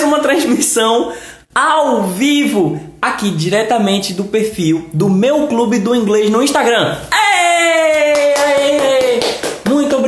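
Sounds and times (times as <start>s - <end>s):
speech: 0.3s - 7.2s
audience applause: 7.9s - 10.0s.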